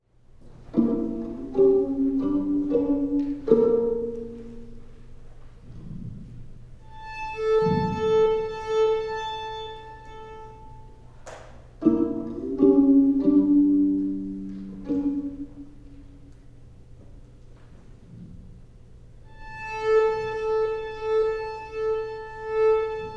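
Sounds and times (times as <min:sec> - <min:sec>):
violin: 0:00.0 - 0:23.1.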